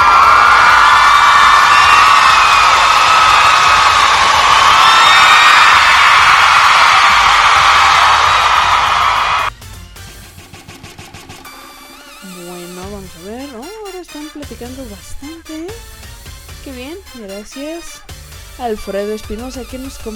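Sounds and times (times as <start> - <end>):
crowd ovation: 0.0 - 9.5
speech: 18.6 - 20.1.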